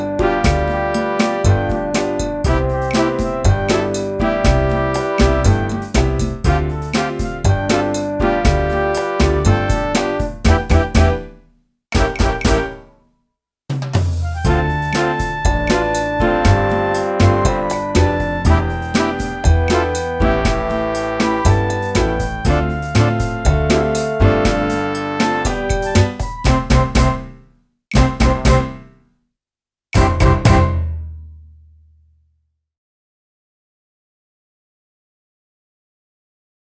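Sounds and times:
clarinet: 0:00.0 - 0:11.3, 0:12.0 - 0:12.9, 0:14.2 - 0:27.4, 0:28.0 - 0:28.8, 0:30.0 - 0:30.9.

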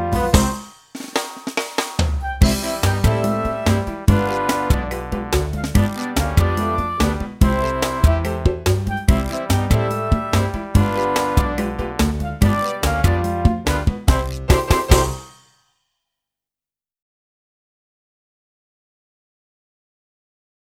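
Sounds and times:
clarinet playing calypso: 0:00.0 - 0:00.8, 0:02.0 - 0:15.4.

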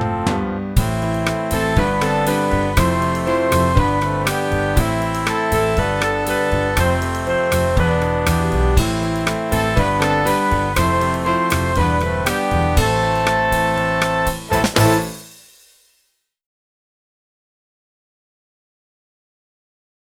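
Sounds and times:
clarinet: 0:00.0 - 0:15.2.

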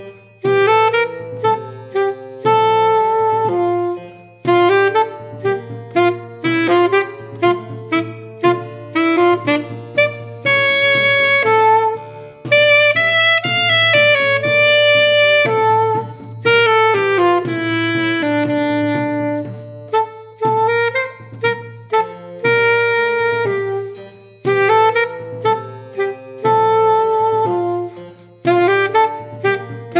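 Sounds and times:
saxophone: 0:00.0 - 0:29.9.

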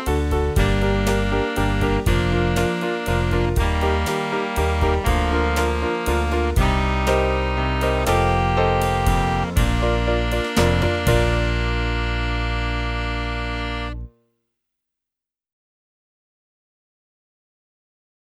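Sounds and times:
saxophone: 0:00.0 - 0:14.1.

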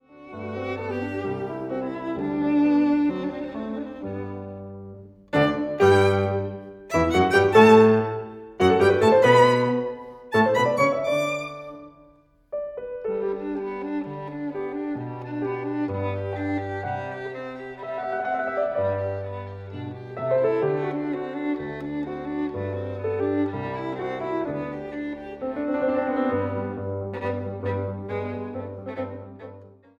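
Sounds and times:
violin: 0:00.0 - 0:29.9.

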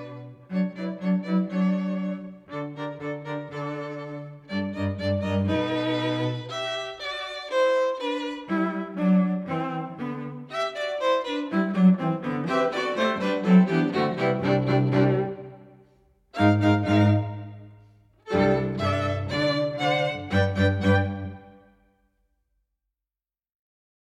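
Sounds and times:
music without second violin part: 0:00.0 - 0:22.0.

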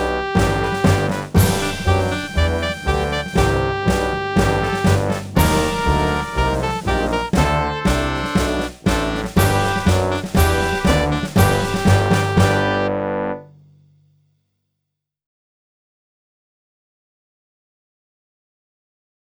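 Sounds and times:
saxophone: 0:00.0 - 0:13.5.

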